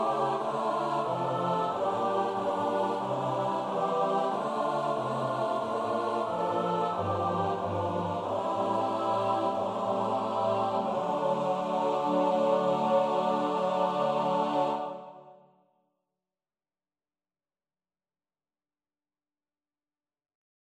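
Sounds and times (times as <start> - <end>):
SATB choir part practice: 0.0 - 15.4.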